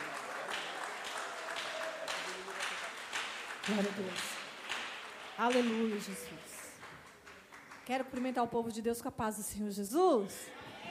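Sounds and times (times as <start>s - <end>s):
audience clapping: 0.0s - 8.7s
speech: 3.7s - 4.4s, 5.4s - 6.5s, 7.9s - 10.7s.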